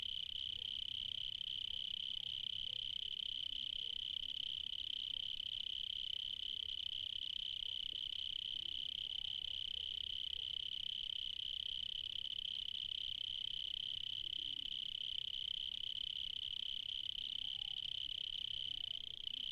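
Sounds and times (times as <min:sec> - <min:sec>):
cricket chirping in the evening in Spain: 0:00.0 - 0:19.5.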